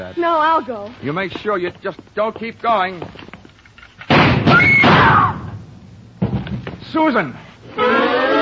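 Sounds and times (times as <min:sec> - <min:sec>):
speech: 0:00.0 - 0:03.3, 0:06.9 - 0:08.3
loud gunshots fired through a door from outside: 0:04.1 - 0:05.4.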